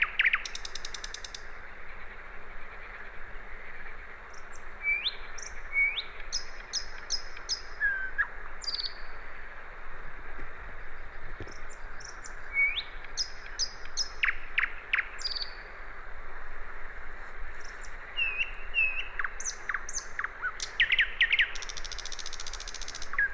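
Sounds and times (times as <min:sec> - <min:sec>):
common nightingale song: 0:00.0 - 0:09.6, 0:10.2 - 0:16.0, 0:17.3 - 0:23.3
hiss: 0:00.0 - 0:23.3.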